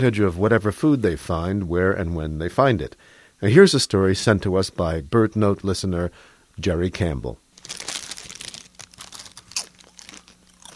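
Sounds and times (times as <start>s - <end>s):
speech: 0.0s - 7.8s
crow biting into a crunchy tortilla chip: 7.6s - 10.7s.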